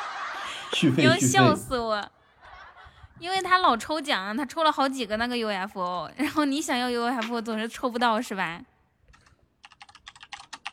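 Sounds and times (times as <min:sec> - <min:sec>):
laughter: 0:00.0 - 0:03.2
speech: 0:00.7 - 0:02.2, 0:03.2 - 0:08.7
typing on a computer keyboard: 0:09.1 - 0:10.7.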